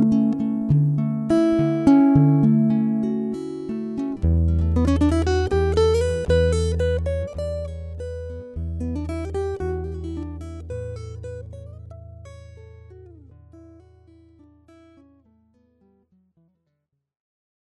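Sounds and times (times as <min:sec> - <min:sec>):
floating guitar: 0:00.0 - 0:16.0.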